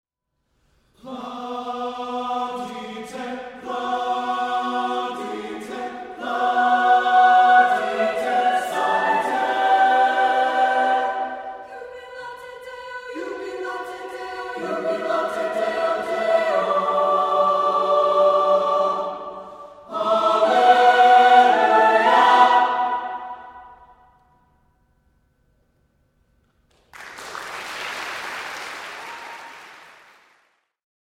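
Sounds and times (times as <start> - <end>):
choir singing: 1.0 - 24.1.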